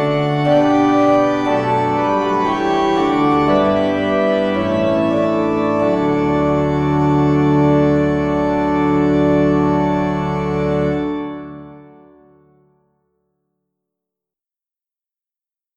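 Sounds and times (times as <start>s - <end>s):
organ: 0.0s - 12.6s.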